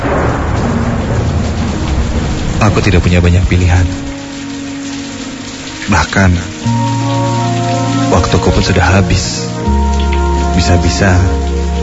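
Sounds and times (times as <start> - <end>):
heavy rain: 0.0 - 11.8
speech: 2.6 - 4.2, 5.9 - 7.7, 8.3 - 9.8, 10.6 - 11.4.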